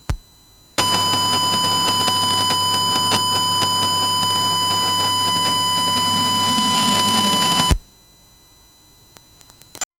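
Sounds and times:
computer DSL line: 0.8 - 7.8.

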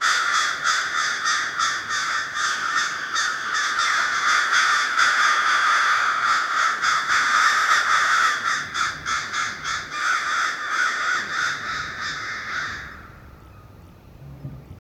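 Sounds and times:
crows cawing: 0.0 - 13.4.

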